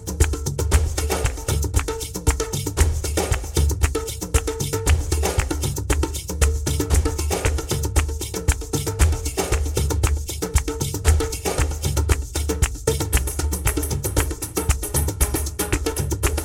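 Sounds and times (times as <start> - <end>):
drums in dialogue: 0.0 - 16.4.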